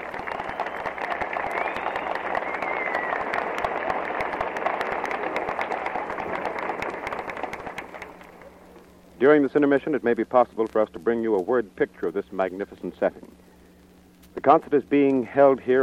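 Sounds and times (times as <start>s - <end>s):
concert audience applause at the Lincoln Memorial: 0.0s - 8.9s
speech: 9.2s - 13.3s, 14.4s - 15.8s.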